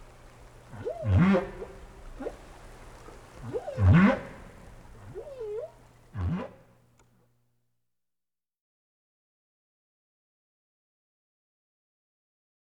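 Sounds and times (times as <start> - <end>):
whale chirps and grunts: 0.0 - 6.9.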